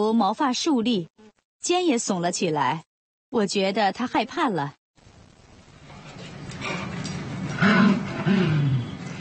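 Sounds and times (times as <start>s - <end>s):
speech: 0.0s - 4.8s
dog's playful growl, played recording: 7.6s - 9.0s.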